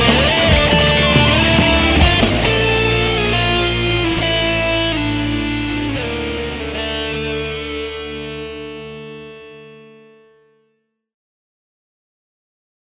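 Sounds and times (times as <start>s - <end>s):
instrumental music: 0.0s - 10.2s.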